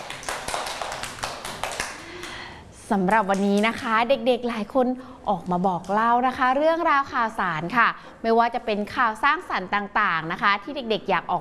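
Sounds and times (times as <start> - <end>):
hands clapping for a child at a children's news session: 0.0 - 2.4
speech: 2.9 - 11.4.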